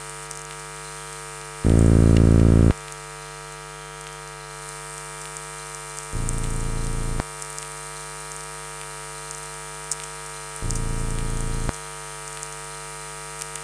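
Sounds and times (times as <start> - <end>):
noise: 1.6 - 2.8, 6.2 - 7.3, 10.6 - 11.8.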